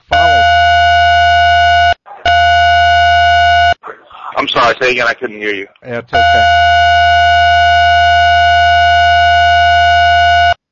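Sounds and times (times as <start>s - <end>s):
phone ringing or alarm tone: 0.0s - 3.8s, 6.2s - 10.6s
speech: 4.5s - 6.8s.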